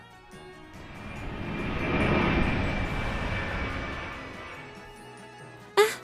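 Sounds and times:
small private airplane engine drone: 0.0 - 5.8
rising whoosh: 0.2 - 4.9.

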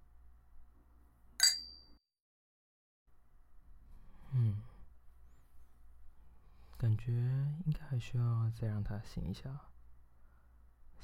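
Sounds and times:
low hum: 0.0 - 2.0, 3.1 - 11.0
wine glasses clinking in a toast: 1.4 - 1.9
speech: 6.8 - 9.7.

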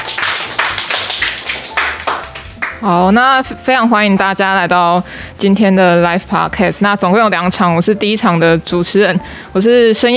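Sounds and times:
audience applause: 0.0 - 2.8
speech: 2.8 - 10.1.

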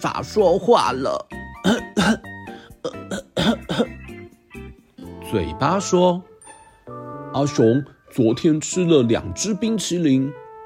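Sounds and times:
speech: 0.0 - 3.0, 5.3 - 6.3, 7.3 - 10.4
voice imitating coughing: 1.6 - 4.1.

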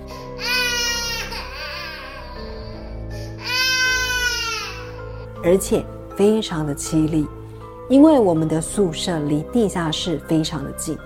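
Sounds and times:
child crying: 0.4 - 5.3
speech: 5.4 - 11.0.

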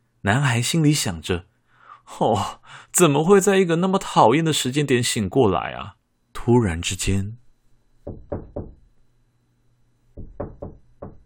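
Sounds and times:
speech: 0.2 - 7.4, 8.0 - 8.7
light hand knocking on a window: 8.0 - 8.8, 10.2 - 11.2.

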